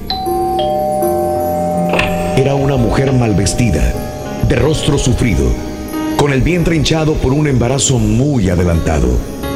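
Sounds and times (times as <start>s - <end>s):
doorbell chiming: 0.1s - 6.6s
speech: 2.4s - 9.4s.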